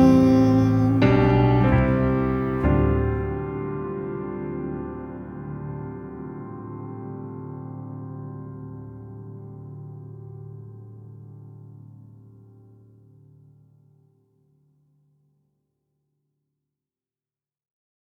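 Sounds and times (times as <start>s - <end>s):
piano music: 0.0s - 12.3s.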